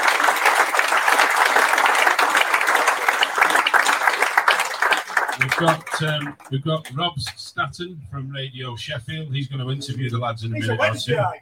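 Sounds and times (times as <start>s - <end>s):
crowd applauding: 0.0s - 7.0s
speech: 5.6s - 11.4s.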